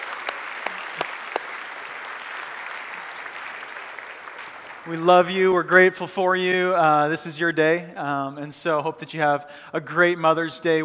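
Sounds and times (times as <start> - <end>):
church congregation applauding the mothers on Mother's Day: 0.0 - 5.8
speech: 4.8 - 10.8.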